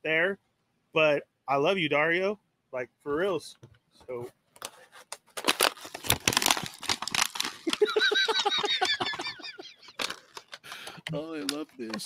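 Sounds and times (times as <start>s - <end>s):
speech: 1.1s - 4.4s, 11.1s - 12.0s
thick packaging being ripped open: 4.6s - 7.9s, 9.8s - 12.0s
laughter: 7.6s - 10.1s.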